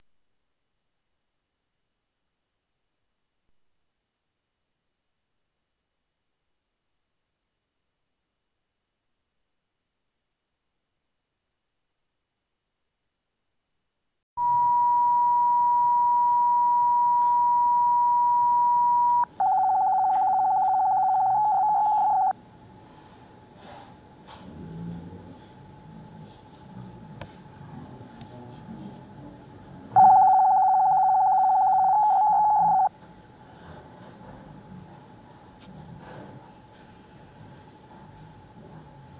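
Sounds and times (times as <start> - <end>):
fax sound: 14.4 - 22.3, 30.0 - 32.9.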